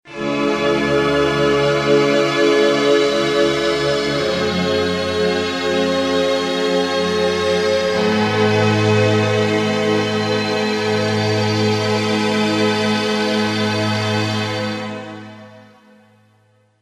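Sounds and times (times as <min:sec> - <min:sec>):
Roland JP-6 synthesizer: 0:00.0 - 0:16.7.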